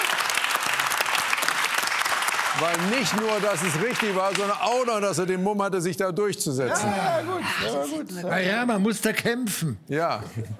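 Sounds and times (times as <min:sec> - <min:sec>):
audience clapping loudly: 0:00.0 - 0:05.4
speech: 0:02.6 - 0:10.5.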